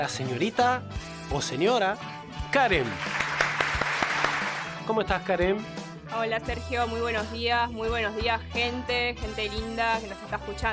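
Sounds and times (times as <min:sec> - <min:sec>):
speech: 0:00.0 - 0:03.2, 0:04.8 - 0:10.7
loud applause: 0:02.8 - 0:04.8.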